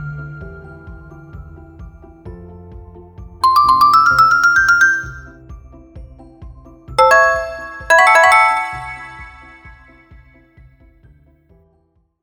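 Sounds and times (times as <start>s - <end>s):
notification sound: 3.4s - 5.3s, 7.0s - 10.0s.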